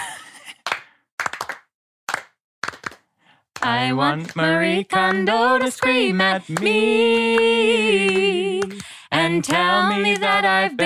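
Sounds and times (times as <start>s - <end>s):
group clapping along: 0.6s - 10.8s
speech: 3.6s - 10.8s.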